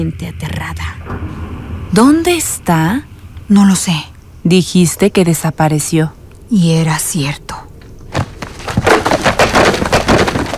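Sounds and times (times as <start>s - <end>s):
speech: 0.0s - 7.5s
wall cracking apart: 8.2s - 10.5s.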